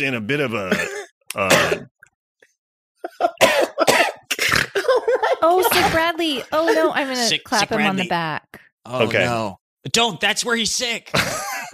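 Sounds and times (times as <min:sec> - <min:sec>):
speech: 0:00.0 - 0:01.9, 0:03.0 - 0:03.8, 0:05.0 - 0:11.7
person coughing: 0:00.6 - 0:01.9, 0:03.1 - 0:07.0
laughter: 0:03.0 - 0:04.0, 0:04.6 - 0:08.1, 0:11.1 - 0:11.7.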